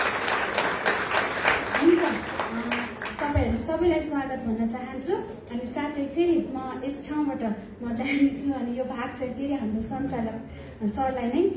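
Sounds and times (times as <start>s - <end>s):
church gathering clapping in welcome: 0.0s - 3.5s
speech: 3.8s - 11.5s.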